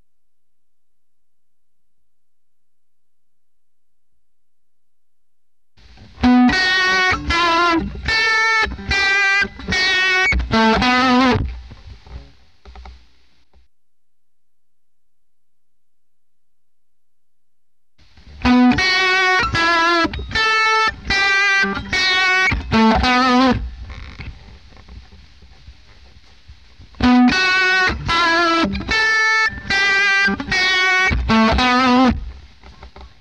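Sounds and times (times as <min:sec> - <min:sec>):
electric guitar: 0:05.8 - 0:13.1, 0:18.0 - 0:33.1.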